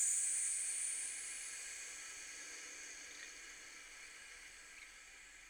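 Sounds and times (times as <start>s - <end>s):
toilet cistern: 0.0s - 5.4s.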